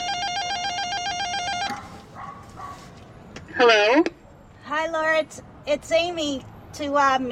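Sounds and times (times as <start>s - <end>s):
apartment intercom buzzer ringing: 0.0s - 1.7s
speech: 3.6s - 4.2s, 4.8s - 7.2s.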